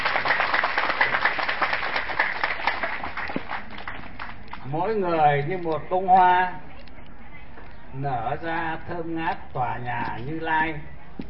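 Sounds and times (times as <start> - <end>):
audience applause: 0.0 - 4.5
speech: 4.7 - 6.6, 7.9 - 10.9.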